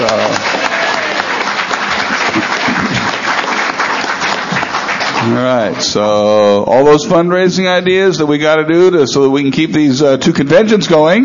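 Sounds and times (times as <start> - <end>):
audience applause at a convention: 0.0 - 6.0
speech: 5.4 - 11.2.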